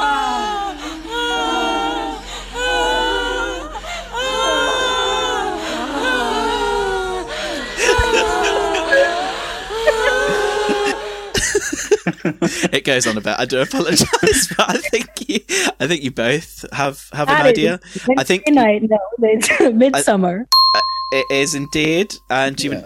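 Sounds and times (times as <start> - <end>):
women screaming in a film clip: 0.0 - 11.5
laughter: 0.0 - 16.4, 17.2 - 18.1
speech: 12.3 - 22.8.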